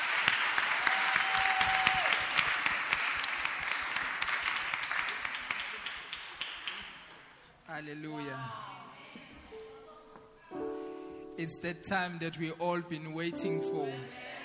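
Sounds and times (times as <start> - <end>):
audience applause in church: 0.0 - 7.4
speech: 7.8 - 8.7, 11.4 - 14.4.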